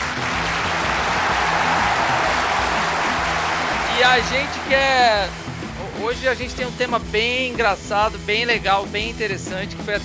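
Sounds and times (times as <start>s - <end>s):
group applauding: 0.0s - 6.1s
speech: 4.1s - 10.0s.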